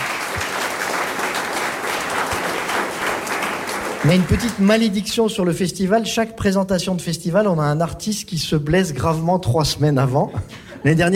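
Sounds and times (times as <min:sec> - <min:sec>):
audience applause: 0:00.0 - 0:04.9
speech: 0:04.0 - 0:11.1.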